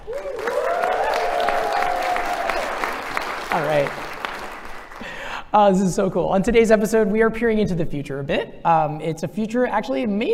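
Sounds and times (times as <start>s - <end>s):
live audience applause: 0.0s - 5.3s
speech: 5.5s - 10.3s.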